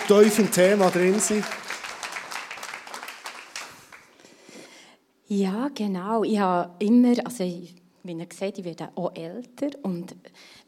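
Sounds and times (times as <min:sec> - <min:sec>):
audience applause: 0:00.0 - 0:04.2
speech: 0:00.1 - 0:01.8, 0:05.3 - 0:10.6.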